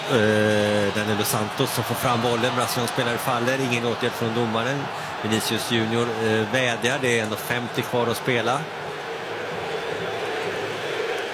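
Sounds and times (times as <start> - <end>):
large stadium crowd roaring in protest after a foul: 0.0 - 11.3
speech: 0.1 - 8.8.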